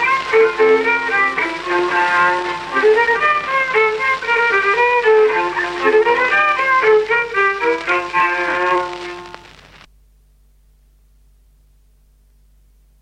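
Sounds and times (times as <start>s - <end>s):
folk violin tune: 0.0s - 9.7s.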